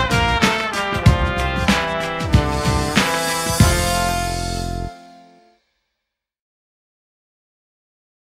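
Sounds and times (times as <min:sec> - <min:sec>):
trumpet playing in a taxi: 0:00.0 - 0:05.5.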